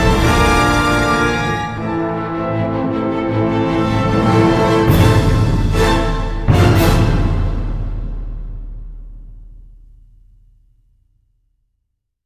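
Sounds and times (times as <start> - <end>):
orchestral music: 0.0 - 9.8.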